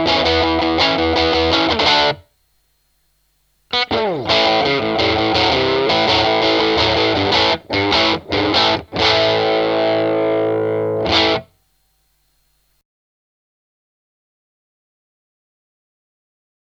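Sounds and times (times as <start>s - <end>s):
5W valve amplifier crunch with british blue speaker: 0.0s - 12.8s.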